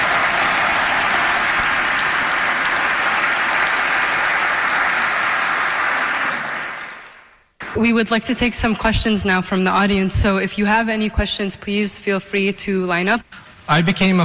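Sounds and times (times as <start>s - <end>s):
audience applause: 0.0s - 7.8s
speech: 7.8s - 14.2s.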